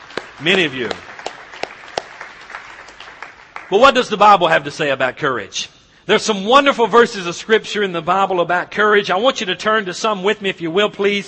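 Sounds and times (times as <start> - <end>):
audience applause: 0.0 - 3.9
speech: 0.4 - 1.1, 3.7 - 11.2.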